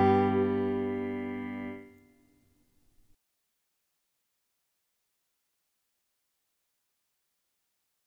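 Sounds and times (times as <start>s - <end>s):
person singing a song: 0.0s - 1.6s.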